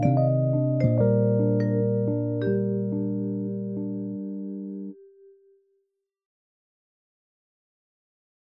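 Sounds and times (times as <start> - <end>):
electric piano: 0.0 - 5.4.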